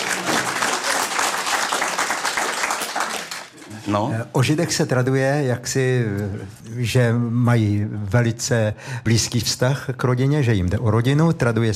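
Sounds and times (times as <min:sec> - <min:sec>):
audience applause: 0:00.0 - 0:03.6
speech: 0:03.9 - 0:11.7.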